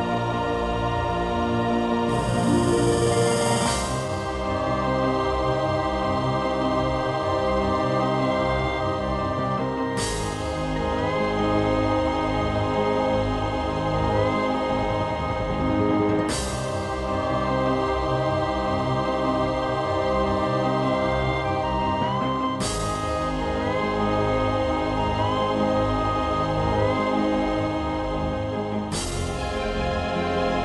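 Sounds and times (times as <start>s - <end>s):
orchestrated aquatic ambiance music sequenced on Super Nintendo: 0.0s - 30.6s.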